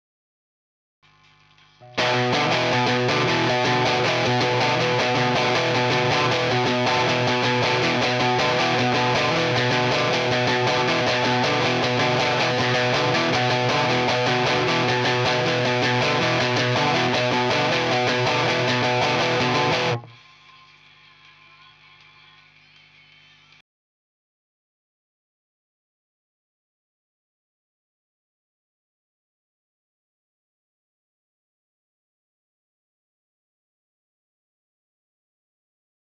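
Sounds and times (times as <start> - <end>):
seven-string guitar: 1.8 - 23.6.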